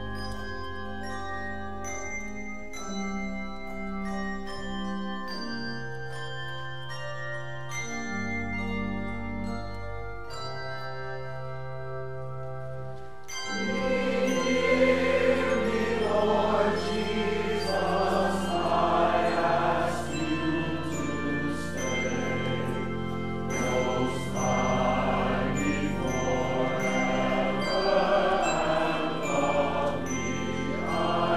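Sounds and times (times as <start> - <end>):
handbells ringing: 0.0 - 31.3
mass choir singing: 13.5 - 31.3.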